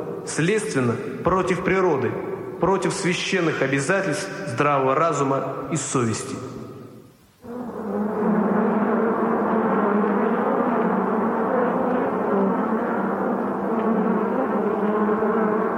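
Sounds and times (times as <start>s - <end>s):
speech: 0.3s - 6.6s
flies buzzing: 7.4s - 15.7s.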